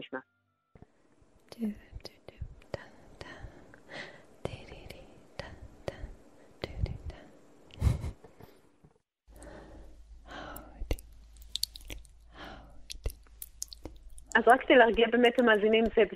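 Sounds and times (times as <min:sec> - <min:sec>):
speech: 0:00.0 - 0:00.4, 0:01.6 - 0:01.8, 0:14.5 - 0:16.1
soft breathy ASMR whispering from a YouTube video: 0:01.5 - 0:03.7, 0:04.4 - 0:07.4, 0:10.2 - 0:13.2
mouth clicks: 0:10.3 - 0:16.0
crackly taps: 0:13.0 - 0:16.1.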